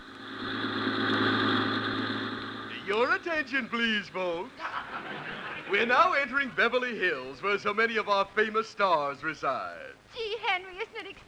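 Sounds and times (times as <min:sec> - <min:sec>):
free sightseeing tour bus engine humming: 0:00.0 - 0:09.9
laughter: 0:02.8 - 0:08.2
speech: 0:03.0 - 0:11.2.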